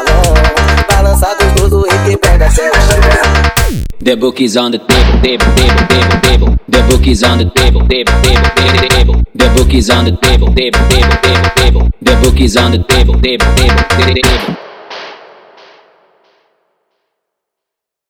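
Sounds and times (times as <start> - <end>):
old-school funk loop: 0.0 - 4.0, 4.7 - 14.6.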